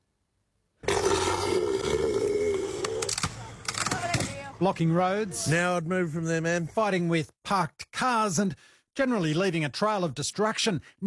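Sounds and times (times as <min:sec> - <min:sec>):
elephant seal roaring: 0:00.8 - 0:03.2
speech: 0:04.6 - 0:11.0.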